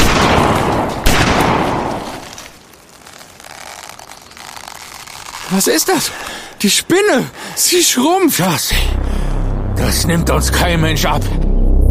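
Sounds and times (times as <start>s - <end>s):
heavy gunfire aimed at a giant spider: 0.0s - 2.0s
speech: 5.5s - 9.2s, 9.8s - 11.4s.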